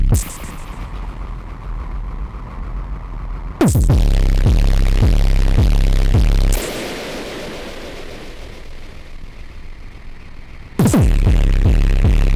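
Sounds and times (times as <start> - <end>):
Soma Pulsar 23 diode synthesizer patch: 0.1 - 0.9, 3.6 - 8.8, 10.8 - 12.3.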